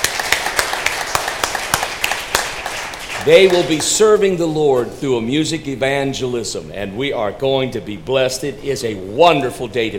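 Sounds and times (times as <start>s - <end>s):
audience clapping and cheering: 0.0s - 4.3s
speech: 3.2s - 9.9s.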